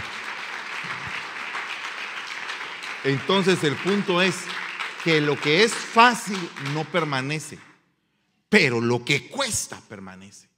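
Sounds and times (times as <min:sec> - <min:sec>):
audience applause: 0:00.0 - 0:07.5
speech: 0:03.0 - 0:07.7, 0:08.5 - 0:10.5.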